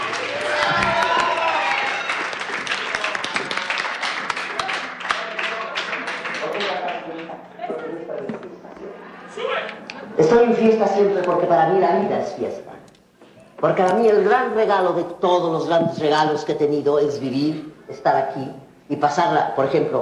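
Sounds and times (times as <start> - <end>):
indistinct voices and cheers: 0.0 - 6.1
crowd applauding: 0.0 - 7.8
speech: 10.4 - 12.6, 13.6 - 20.0.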